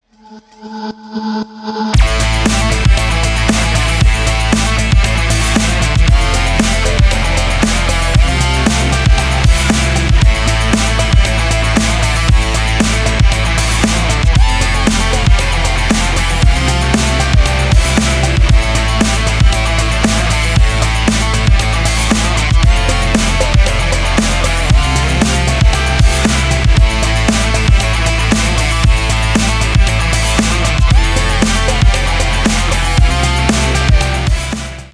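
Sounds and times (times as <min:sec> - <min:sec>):
instrumental music: 0:02.0 - 0:34.9.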